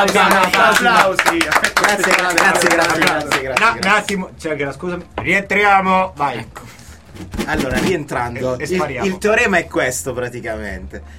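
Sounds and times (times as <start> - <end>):
audience applause: 0.0 - 3.9
speech: 0.0 - 11.1.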